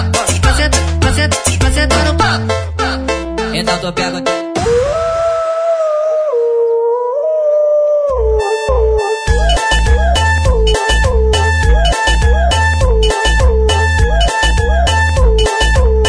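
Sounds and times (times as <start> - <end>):
heavy thumping electronic beat: 0.0 - 5.2, 8.4 - 16.0
wolf howl: 4.7 - 9.3.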